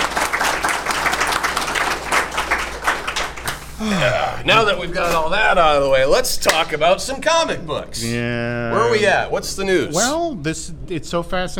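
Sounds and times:
audience applauding at the opening of a comic book show: 0.0s - 3.7s
speech: 4.0s - 11.5s.

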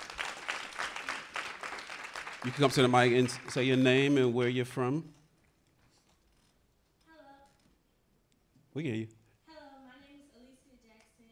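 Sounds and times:
audience applause: 0.0s - 4.1s
speech: 2.4s - 5.2s, 8.8s - 9.2s.

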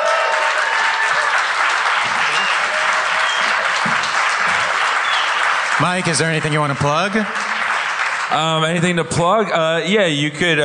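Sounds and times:
audience applause for stand-up comedian Mike Lawrence: 0.0s - 9.6s
speech: 5.8s - 7.4s, 8.3s - 10.6s.

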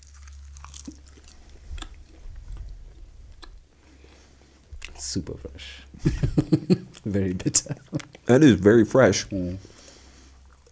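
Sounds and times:
chewing food: 0.0s - 5.0s, 6.7s - 8.4s, 9.6s - 10.6s
speech: 5.0s - 9.7s
laughter: 6.0s - 8.0s.

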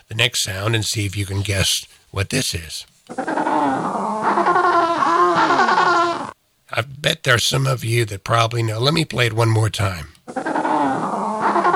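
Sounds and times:
speech: 0.1s - 4.8s, 5.4s - 5.9s, 6.7s - 10.2s
penguin call: 3.1s - 6.4s, 10.3s - 11.7s.

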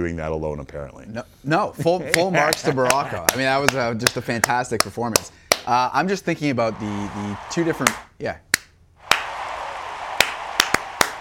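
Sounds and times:
speech: 0.0s - 8.4s
hands clapping: 2.1s - 5.7s, 7.6s - 11.1s.

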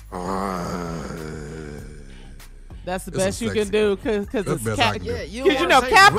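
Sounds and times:
person imitating a growl: 0.0s - 3.4s
speech: 2.9s - 6.1s.

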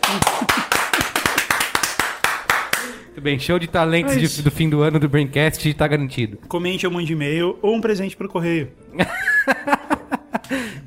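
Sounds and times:
hands clapping: 0.0s - 3.0s
speech: 0.1s - 0.6s, 3.2s - 9.9s, 10.5s - 10.8s
laughter: 9.0s - 10.8s.

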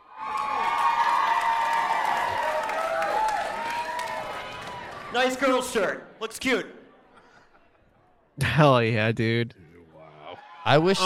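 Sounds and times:
crowd cheering loudly with shouts and whoops: 0.0s - 5.7s, 10.0s - 11.0s
scattered clapping: 0.3s - 5.4s
speech: 5.2s - 6.8s, 8.4s - 9.6s, 10.6s - 11.0s.

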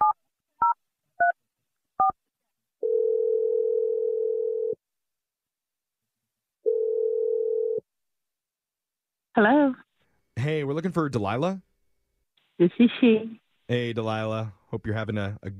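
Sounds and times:
long steady phone ringing tones: 2.8s - 4.8s, 6.6s - 7.8s
speech: 9.4s - 9.8s, 10.4s - 11.7s, 12.6s - 15.5s.

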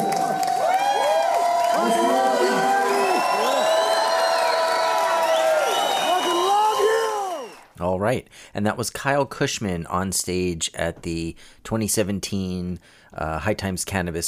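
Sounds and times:
audience applause: 0.0s - 7.7s
speech: 8.1s - 14.2s.

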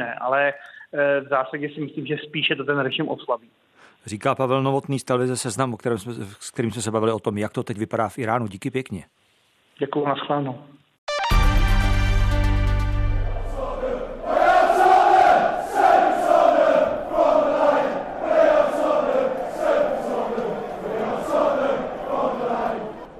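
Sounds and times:
speech: 0.0s - 9.2s, 9.8s - 10.8s
steady musical tone: 11.1s - 23.1s
football fans chanting in stadium: 13.0s - 23.1s.

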